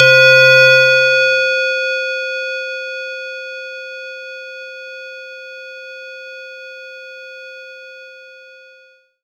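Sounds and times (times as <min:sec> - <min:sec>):
synth line in C3: 0:00.0 - 0:02.1.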